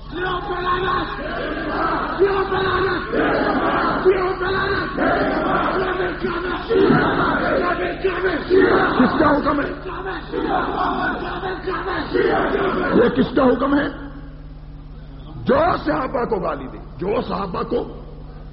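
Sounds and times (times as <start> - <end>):
speech: 0.1 - 5.4, 6.2 - 14.0, 15.5 - 18.0
crowd chanting a slogan at a religious gathering: 0.7 - 13.2.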